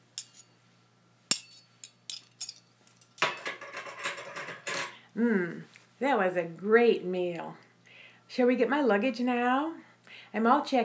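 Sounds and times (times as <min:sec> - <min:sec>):
cutlery and dishes clinking during a meal: 0:00.2 - 0:00.5, 0:01.3 - 0:05.0
speech: 0:05.2 - 0:07.6, 0:08.3 - 0:10.8.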